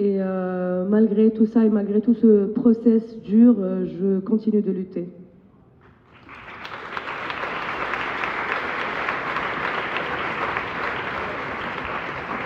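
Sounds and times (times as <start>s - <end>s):
speech: 0.9s - 5.2s
audience applause: 6.1s - 12.4s.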